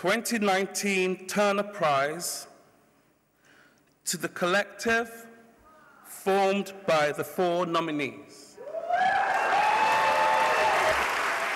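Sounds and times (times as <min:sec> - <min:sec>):
speech: 0:00.0 - 0:02.5, 0:04.0 - 0:05.3, 0:06.2 - 0:08.4
audience applause: 0:08.8 - 0:11.5.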